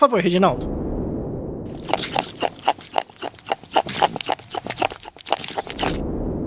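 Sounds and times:
speech: 0.0s - 0.8s
hyrax clicking its teeth: 1.7s - 6.0s.

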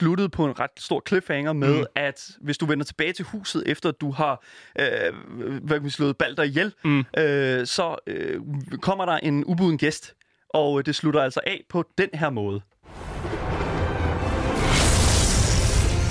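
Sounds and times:
speech: 0.0s - 13.1s
thunder and lightning: 12.9s - 16.0s.

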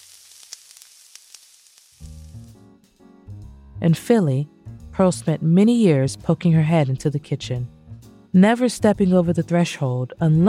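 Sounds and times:
fried chicken crackling on the stove: 0.0s - 2.6s
speech: 3.8s - 7.8s, 8.4s - 10.4s.

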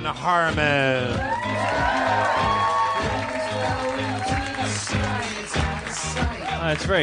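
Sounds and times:
speech: 0.0s - 7.0s
audience cheering and applauding: 1.0s - 7.0s.

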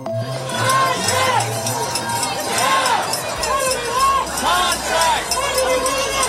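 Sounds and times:
protesting crowd of striking Hollywood writers: 0.2s - 6.2s.

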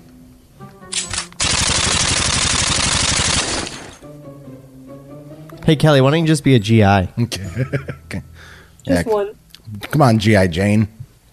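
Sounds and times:
machine gun fire in a daytime trench battle: 0.9s - 4.0s
speech: 5.7s - 11.0s
laughter: 7.2s - 8.3s.

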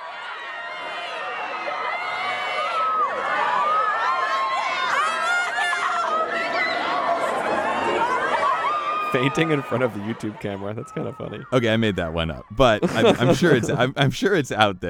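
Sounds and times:
crowd of teenage girls screaming and shrieking: 0.0s - 11.8s
laughter: 6.0s - 14.8s
speech: 9.1s - 14.8s.

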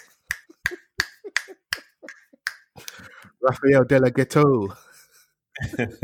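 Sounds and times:
finger snapping: 0.3s - 3.0s
speech: 3.4s - 4.8s, 5.6s - 6.0s.

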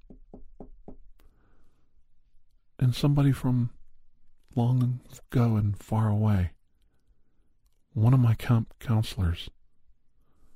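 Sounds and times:
knocking on a door: 0.0s - 1.0s
speech: 2.8s - 3.8s, 4.5s - 6.6s, 8.0s - 9.6s.

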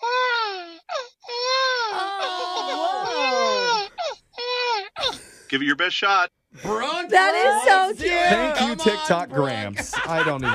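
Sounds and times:
voice imitating a baby crying: 1.5s - 5.0s, 7.4s - 9.8s
laughter: 1.9s - 3.8s, 6.8s - 10.5s
speech: 5.5s - 10.5s.

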